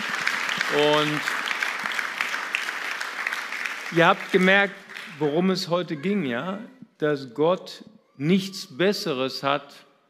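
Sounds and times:
audience applause: 0:00.0 - 0:05.6
speech: 0:00.7 - 0:01.4, 0:03.9 - 0:09.9.

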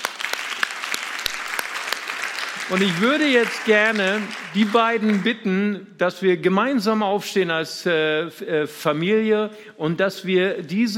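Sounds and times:
applause: 0:00.0 - 0:05.5
speech: 0:02.7 - 0:10.9.

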